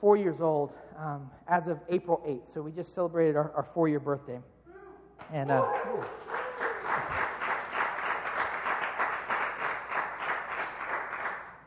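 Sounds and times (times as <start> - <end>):
speech: 0.0 - 4.5, 5.2 - 6.4
church congregation clapping: 5.2 - 11.6.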